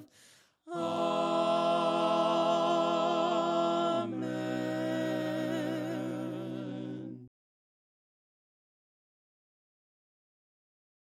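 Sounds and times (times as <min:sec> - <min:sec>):
voices singing hymns a cappella: 0:00.0 - 0:07.3.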